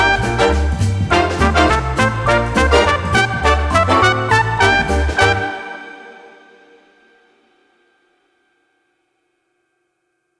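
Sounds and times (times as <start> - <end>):
comedy swing music: 0.0 - 6.5.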